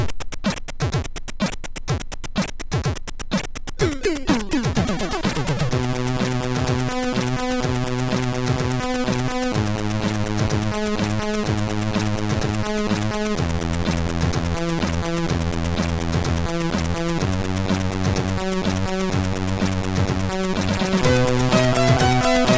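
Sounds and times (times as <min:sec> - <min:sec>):
MOS 6581R2 SID chip music: 0:00.0 - 0:22.5.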